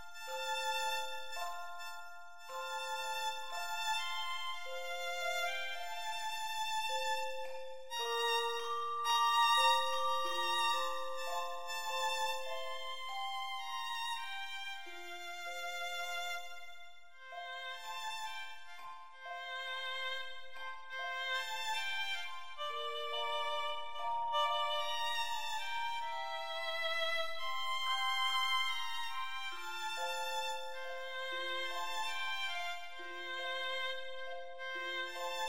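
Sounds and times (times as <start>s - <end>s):
Christmas tune on violin: 0.0s - 35.4s.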